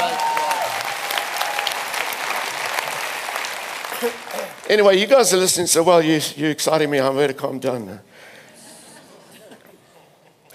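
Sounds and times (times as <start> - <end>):
audience shouting: 0.0 - 1.9
audience clapping: 0.0 - 5.5
speech: 4.0 - 8.3.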